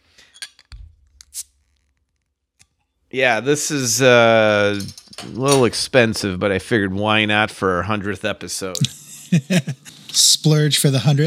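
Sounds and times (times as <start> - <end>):
bottle of strong 11.2% ABV brew hissing open: 1.2 - 1.6
speech: 3.1 - 11.2
laughter: 8.8 - 10.0.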